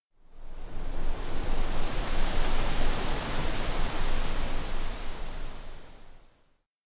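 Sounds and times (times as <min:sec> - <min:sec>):
wind: 0:00.2 - 0:06.2.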